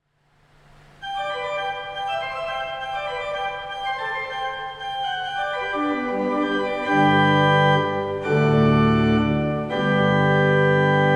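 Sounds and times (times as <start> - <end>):
pipe organ: 1.0 - 11.1.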